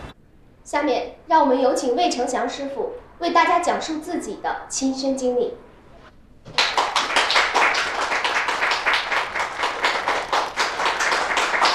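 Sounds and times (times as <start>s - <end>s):
speech: 0.7s - 5.6s
audience clapping: 6.5s - 11.7s.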